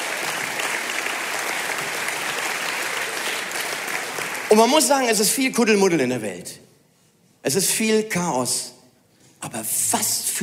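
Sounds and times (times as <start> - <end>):
audience applause: 0.0 - 4.9
speech: 4.5 - 6.6, 7.4 - 8.8, 9.4 - 10.4.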